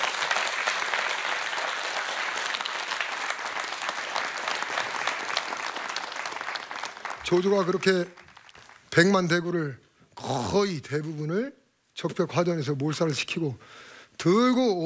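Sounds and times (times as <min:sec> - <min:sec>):
audience applause: 0:00.0 - 0:08.9
speech: 0:07.3 - 0:08.2, 0:09.0 - 0:14.8.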